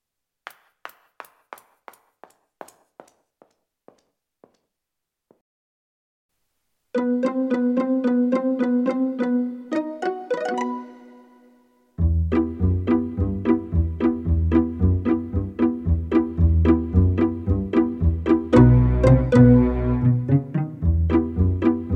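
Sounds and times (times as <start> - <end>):
pizzicato strings: 7.0 - 11.2, 12.0 - 21.9.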